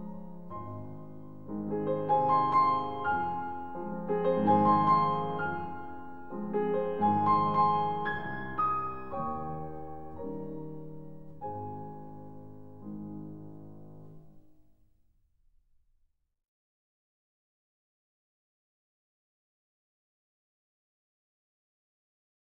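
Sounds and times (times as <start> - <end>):
waltz for piano four hands: 0.0 - 14.4.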